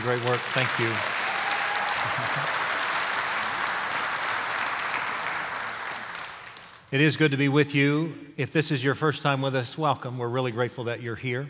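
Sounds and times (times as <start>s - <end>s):
speech: 0.0s - 1.2s, 2.0s - 2.6s, 6.9s - 11.4s
church congregation applauding the musicians: 0.0s - 7.0s.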